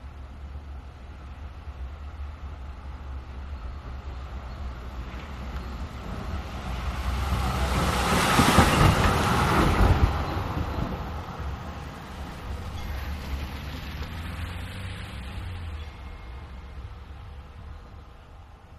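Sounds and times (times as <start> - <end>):
traffic passing on wet slush: 4.0 - 18.7.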